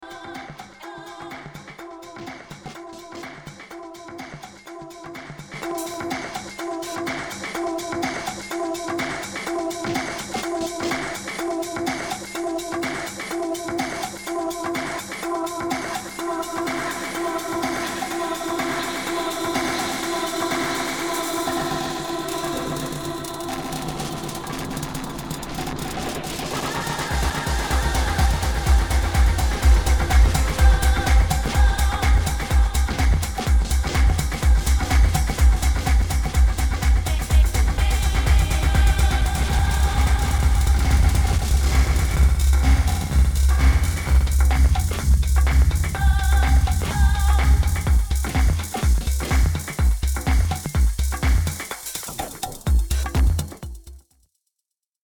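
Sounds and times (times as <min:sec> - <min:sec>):
DJM-900NXS2 DJ mixer ping-pong effect: 0:00.0 - 0:54.0.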